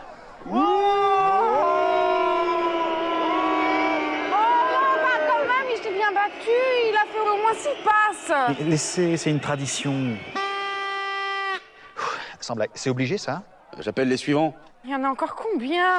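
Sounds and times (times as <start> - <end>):
crowd booing: 0.0 - 12.0
speech: 7.7 - 10.4, 12.5 - 15.9.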